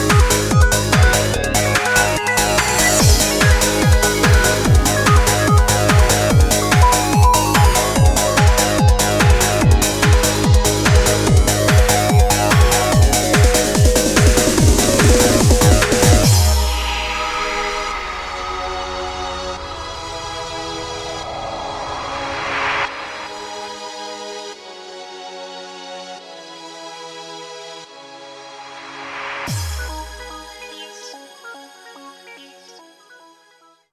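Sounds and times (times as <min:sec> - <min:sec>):
fast beats: 0:00.0 - 0:18.6.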